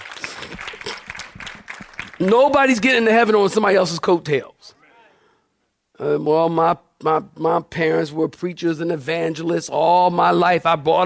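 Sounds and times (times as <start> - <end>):
audience clapping: 0.0 - 3.2
speech: 0.4 - 1.1, 2.2 - 4.8, 6.0 - 11.0.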